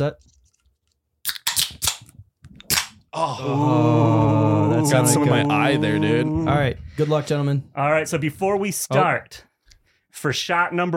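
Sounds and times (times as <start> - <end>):
speech: 0.0 - 0.4, 3.1 - 9.5, 10.1 - 10.9
can of beer cracking open with snapping and hiss: 1.2 - 2.9.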